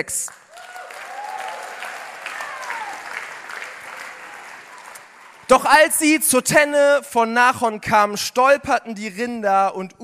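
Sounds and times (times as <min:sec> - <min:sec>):
speech: 0:00.0 - 0:00.4, 0:05.5 - 0:10.0
audience applauding: 0:00.0 - 0:06.0
whistles and cheers: 0:00.5 - 0:05.1.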